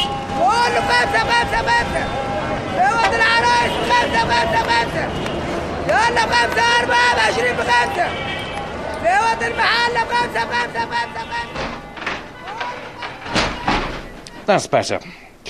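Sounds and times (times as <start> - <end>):
vendor shouting in Cairo city centre street: 0.0 - 14.6
noisy Cairo city centre traffic and street noise: 0.0 - 15.4
speech: 3.9 - 8.4, 9.0 - 11.8, 14.5 - 15.4
thuds: 11.4 - 14.5.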